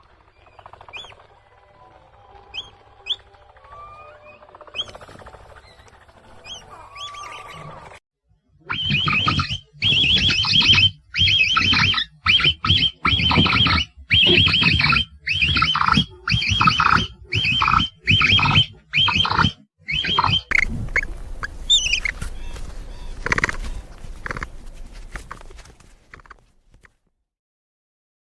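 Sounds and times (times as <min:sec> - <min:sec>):
capybara: 0:00.1 - 0:27.0.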